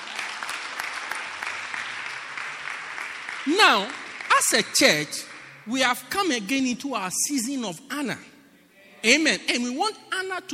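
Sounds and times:
crowd applauding: 0:00.0 - 0:05.7
speech: 0:03.4 - 0:08.3, 0:09.0 - 0:10.5.

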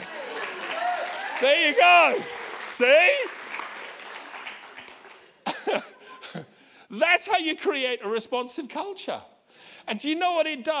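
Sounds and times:
audience clapping: 0:00.0 - 0:05.6
speech: 0:01.4 - 0:03.3, 0:07.0 - 0:09.3, 0:09.9 - 0:10.7.

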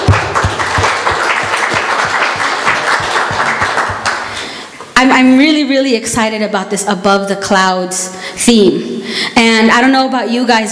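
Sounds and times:
audience at a church gathering applauding: 0:00.0 - 0:04.5
speech: 0:05.0 - 0:10.6.

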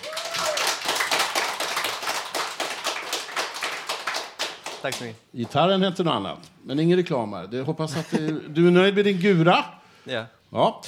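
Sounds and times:
audience applause: 0:00.0 - 0:05.1
speech: 0:04.8 - 0:10.8.

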